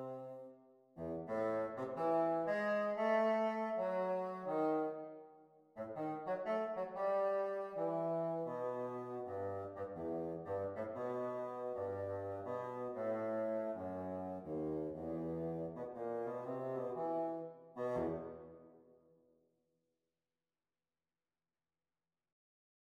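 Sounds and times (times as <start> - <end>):
bassoon duet practice: 0.0 - 0.4, 1.0 - 5.2, 5.8 - 18.6.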